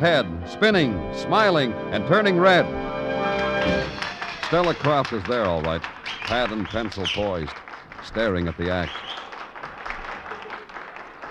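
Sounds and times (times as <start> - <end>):
speech: 0.0 - 2.9, 3.6 - 9.2
audience applause after a dance act: 3.4 - 11.2.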